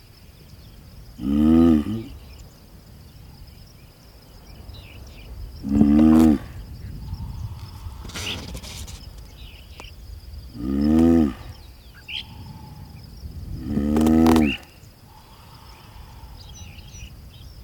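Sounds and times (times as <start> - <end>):
faint small bird chirps: 0.0 - 17.6
Galápagos giant tortoise mating groans: 1.2 - 2.4, 5.5 - 9.6, 10.4 - 17.1.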